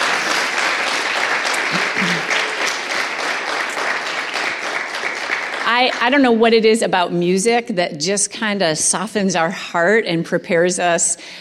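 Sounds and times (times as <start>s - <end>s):
audience applause: 0.0s - 6.1s
speech: 5.8s - 11.3s.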